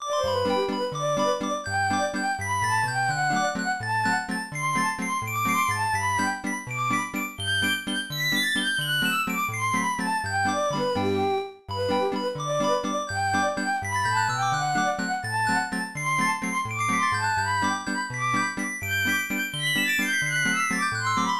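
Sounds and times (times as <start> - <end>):
fiddle tune: 0.0 - 21.3.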